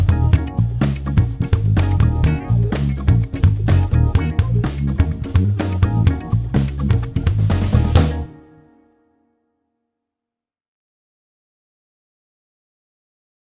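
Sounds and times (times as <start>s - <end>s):
house music: 0.0s - 8.5s.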